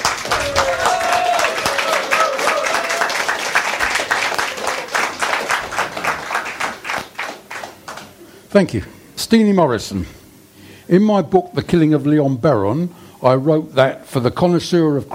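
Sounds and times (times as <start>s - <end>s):
round of applause: 0.0s - 8.2s
speech: 8.5s - 10.2s, 10.9s - 15.1s.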